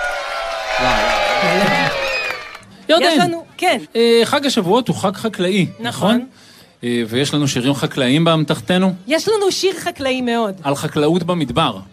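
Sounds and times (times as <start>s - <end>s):
audience cheering and shouting: 0.0s - 2.6s
speech: 2.9s - 11.9s.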